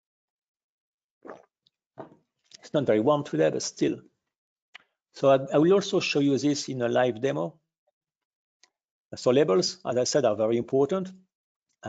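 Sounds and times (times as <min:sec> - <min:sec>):
sipping water: 0:01.2 - 0:01.5
speech: 0:02.0 - 0:04.1, 0:05.2 - 0:07.6, 0:09.1 - 0:11.8.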